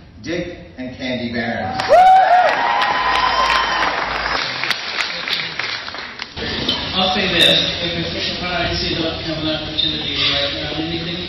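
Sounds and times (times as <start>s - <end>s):
speech: 0.2s - 2.2s, 7.4s - 11.2s
audience applause: 1.8s - 6.4s.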